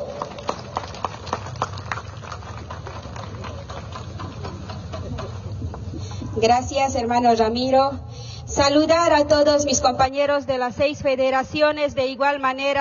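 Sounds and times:
audience clapping: 0.0 - 5.8
speech: 6.4 - 12.7.

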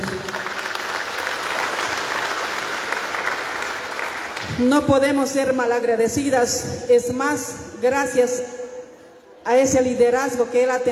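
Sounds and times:
crowd applauding: 0.0 - 4.6
speech: 4.6 - 8.6, 9.5 - 10.8.

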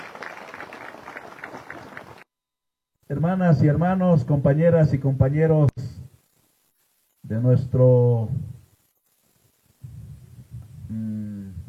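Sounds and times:
audience applause: 0.0 - 2.2
speech: 3.1 - 5.7, 7.3 - 8.5.

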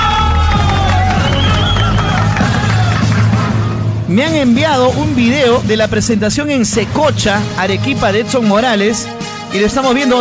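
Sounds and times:
crowd applause and cheering: 0.0 - 4.0
speech: 4.1 - 10.1.

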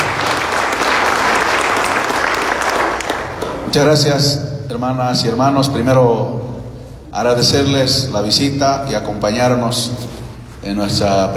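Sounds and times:
audience applause: 0.0 - 3.6
speech: 3.7 - 6.5, 7.2 - 11.3.

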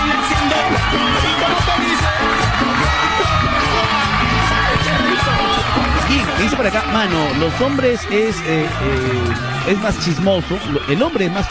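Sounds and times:
audience applause and cheering: 0.0 - 11.4
speech: 6.6 - 11.4.

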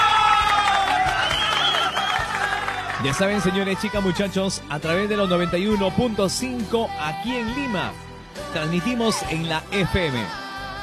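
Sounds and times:
audience applause: 0.0 - 3.5
speech: 3.0 - 10.4.

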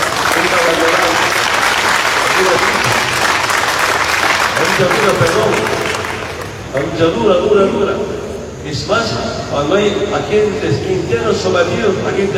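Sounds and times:
audience applause: 0.0 - 6.8
speech: 4.8 - 5.9, 6.8 - 12.3.

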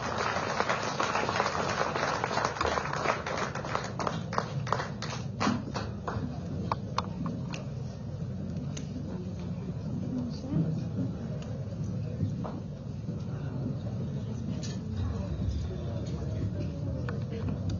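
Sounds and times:
crowd clapping: 0.0 - 6.8
murmur: 0.0 - 17.7.

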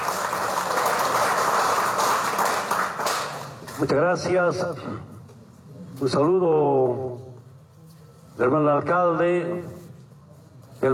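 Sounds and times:
audience applause: 0.0 - 3.8
speech: 3.8 - 5.1, 6.0 - 7.3, 8.4 - 9.8.

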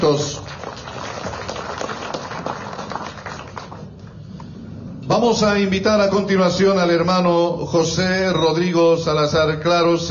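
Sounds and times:
speech: 0.0 - 0.4, 5.1 - 10.1
audience applause: 0.0 - 4.1.

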